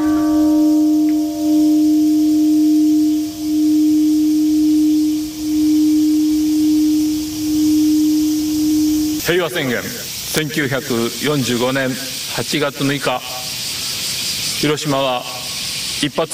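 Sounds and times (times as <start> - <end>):
memorial bell ringing: 0.0 - 9.8
speech: 9.4 - 13.3, 14.6 - 15.3, 16.0 - 16.3.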